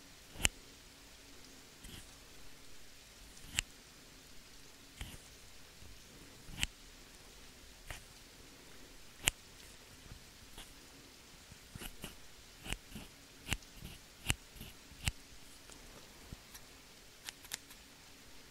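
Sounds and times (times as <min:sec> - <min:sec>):
faint steady low hum: 0:00.0 - 0:18.4
scissors snipping: 0:05.0 - 0:05.2, 0:11.8 - 0:15.8, 0:17.2 - 0:17.8.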